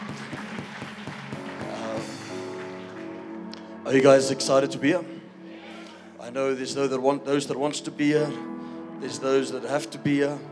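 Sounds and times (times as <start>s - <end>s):
audience clapping: 0.0s - 3.7s
speech: 3.9s - 5.2s, 6.3s - 10.5s.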